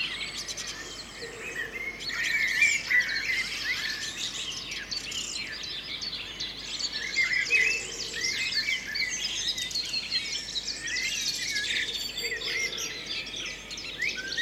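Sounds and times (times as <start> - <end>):
birds singing: 0.0 - 14.4.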